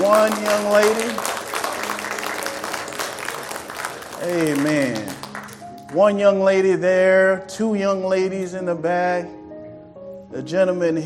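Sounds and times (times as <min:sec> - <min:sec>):
audience clapping: 0:00.0 - 0:06.0
speech: 0:00.1 - 0:01.4, 0:04.2 - 0:05.2, 0:05.9 - 0:09.4, 0:10.3 - 0:11.0.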